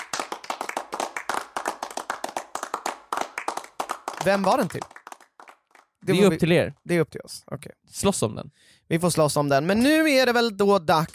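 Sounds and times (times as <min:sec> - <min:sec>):
hand clapping applause: 0:00.0 - 0:06.2
speech: 0:04.2 - 0:05.0, 0:06.1 - 0:11.1.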